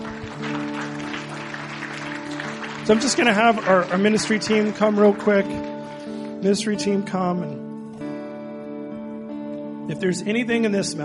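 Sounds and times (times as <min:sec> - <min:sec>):
audience clapping: 0:00.0 - 0:06.5
speech: 0:02.9 - 0:05.7, 0:06.4 - 0:07.6, 0:09.9 - 0:11.0.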